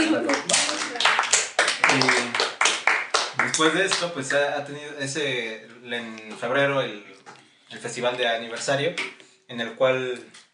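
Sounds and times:
applause: 0:00.0 - 0:04.3
speech: 0:03.6 - 0:07.1, 0:07.7 - 0:10.4.

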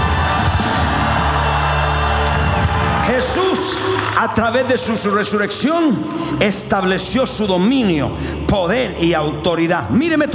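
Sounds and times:
crowd shouting a victory cry: 0:00.0 - 0:04.1
speech: 0:03.1 - 0:10.3.

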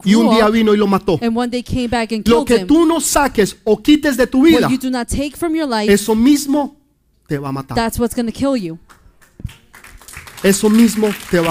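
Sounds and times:
loud vocal exclamation: 0:00.0 - 0:00.6, 0:04.4 - 0:04.8
speech: 0:00.0 - 0:09.6, 0:10.4 - 0:11.4
audience applause: 0:09.2 - 0:11.4.

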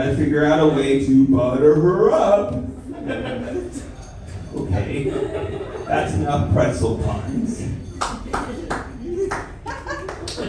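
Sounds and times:
speech: 0:00.0 - 0:03.9, 0:04.5 - 0:08.5
laughter: 0:02.7 - 0:06.2, 0:07.8 - 0:10.4
hands clapping: 0:07.9 - 0:10.4.

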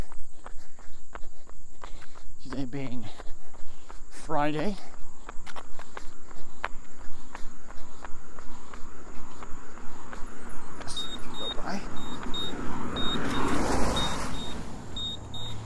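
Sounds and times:
high insect chirping: 0:00.0 - 0:15.6
running footsteps of a person out for a run: 0:00.0 - 0:15.6
speech: 0:02.6 - 0:03.3, 0:04.3 - 0:05.0
car passing: 0:07.4 - 0:15.6.

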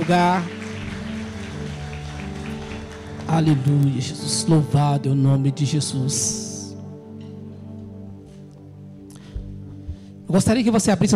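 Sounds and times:
speech: 0:00.0 - 0:00.6, 0:03.3 - 0:06.5, 0:10.3 - 0:11.1
audience applause: 0:00.0 - 0:04.0.

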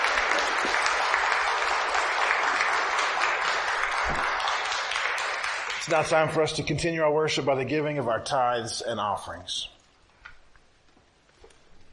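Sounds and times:
audience applause: 0:00.0 - 0:06.5
speech: 0:05.9 - 0:09.8.

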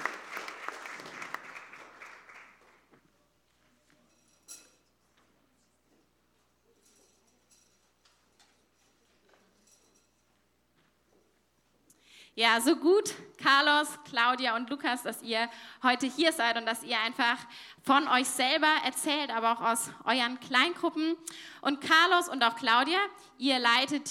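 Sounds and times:
audience applause welcoming guests on stage: 0:00.0 - 0:02.9
speech: 0:12.4 - 0:24.0.

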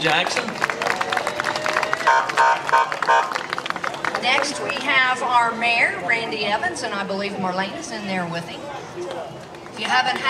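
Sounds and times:
speech: 0:00.0 - 0:00.7, 0:04.2 - 0:10.2
crowd applause at parade: 0:00.0 - 0:05.4
faint cheering: 0:00.6 - 0:04.2.

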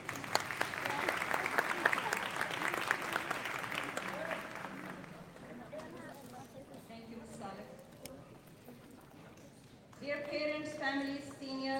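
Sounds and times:
audience applause at graduation ceremony: 0:00.0 - 0:05.6
speech: 0:10.2 - 0:11.7.

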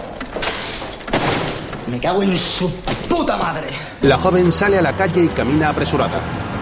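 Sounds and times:
door slammed shut: 0:00.3 - 0:02.0
speech: 0:01.9 - 0:06.4.

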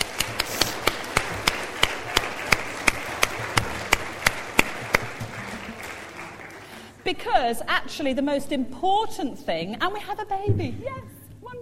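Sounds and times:
audience clapping: 0:00.0 - 0:07.2
speech: 0:07.1 - 0:11.6.

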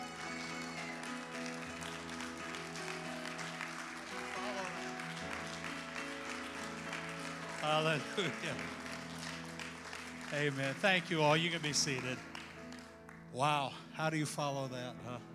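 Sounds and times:
audience applause at an evening church gathering: 0:00.0 - 0:13.2
speech: 0:07.6 - 0:08.8, 0:10.3 - 0:12.3, 0:13.3 - 0:15.3.

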